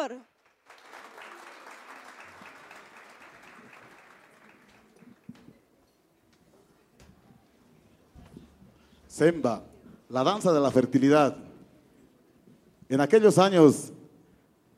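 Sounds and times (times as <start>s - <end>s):
speech: 0.0s - 0.4s, 9.2s - 11.5s, 12.9s - 14.0s
audience applause: 0.3s - 5.4s.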